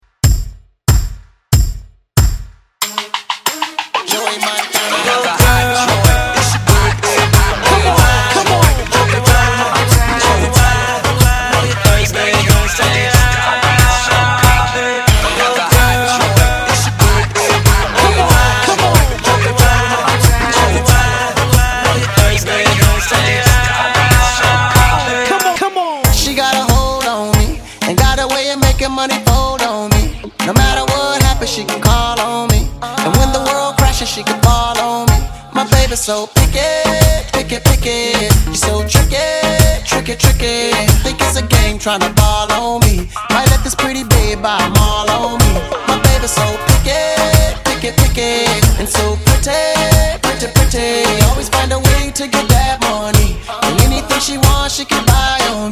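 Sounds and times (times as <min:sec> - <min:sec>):
club music: 0:02.4 - 0:55.6.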